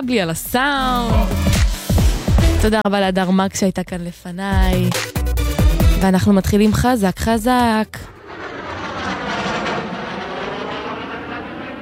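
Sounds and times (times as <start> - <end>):
speech: 0.0 - 1.6, 2.6 - 5.2, 6.0 - 8.1
airplane engine at the start of a song: 8.1 - 11.8.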